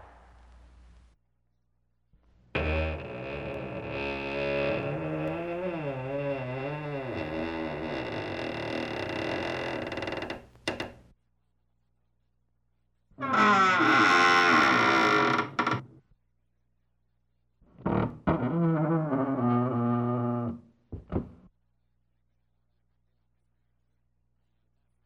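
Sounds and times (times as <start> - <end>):
creaky doors: 2.6 - 11.0, 13.2 - 15.8, 17.8 - 20.6.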